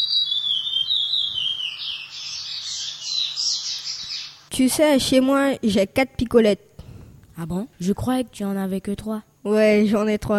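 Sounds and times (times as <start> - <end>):
songbird singing at a songbird contest: 0.0 - 5.4
speech: 4.6 - 6.7, 7.4 - 10.3.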